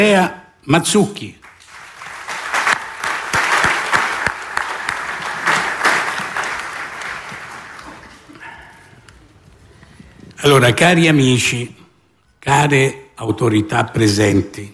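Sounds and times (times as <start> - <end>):
speech: 0.0 - 1.4, 10.4 - 11.8, 12.4 - 14.7
audience applause welcoming a guest: 1.4 - 8.5.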